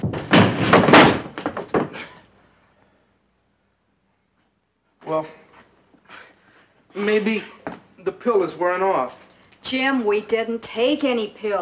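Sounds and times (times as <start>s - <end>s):
crashing through a wall: 0.0s - 2.2s
speech: 5.1s - 5.4s, 7.0s - 11.6s.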